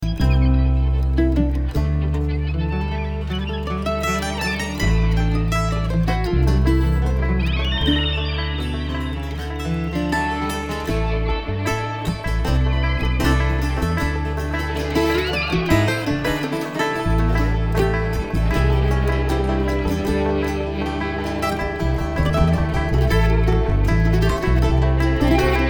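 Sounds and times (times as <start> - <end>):
traffic jam: 0.0 - 25.6.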